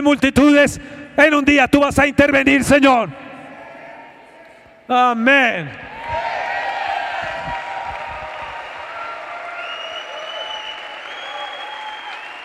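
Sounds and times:
speech: 0.0 - 3.2, 4.9 - 5.9
audience applauding: 6.1 - 12.4.

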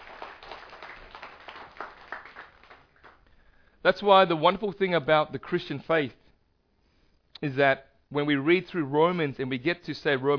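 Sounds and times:
audience applause: 0.0 - 3.2
speech: 3.8 - 6.2, 7.4 - 10.3.

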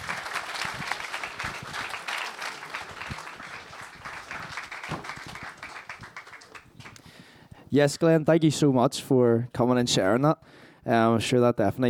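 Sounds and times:
audience applause: 0.0 - 7.0
speech: 7.7 - 11.8.

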